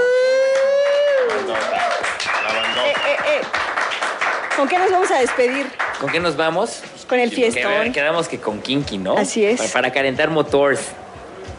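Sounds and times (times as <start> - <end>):
applause for the radio team: 0.4 - 6.5
speech: 4.6 - 11.0.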